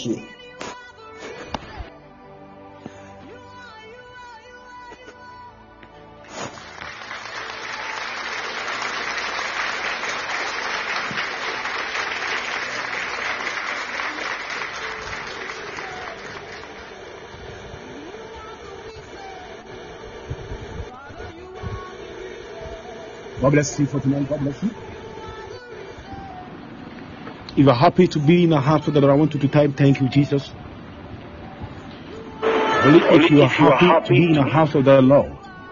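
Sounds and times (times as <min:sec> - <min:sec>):
speech: 0:00.0 - 0:00.4, 0:23.5 - 0:24.9, 0:27.6 - 0:30.6, 0:32.8 - 0:35.4
audience clapping and applause: 0:06.5 - 0:17.1.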